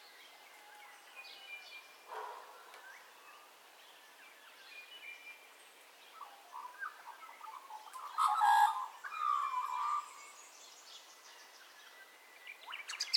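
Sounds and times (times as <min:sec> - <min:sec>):
birds calling at dawn: 0:02.1 - 0:03.5, 0:06.2 - 0:10.4.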